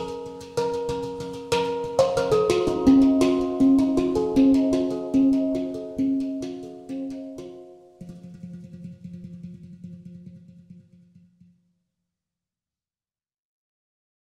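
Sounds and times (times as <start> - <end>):
hang drum solo: 0.0 - 7.4, 8.0 - 11.2.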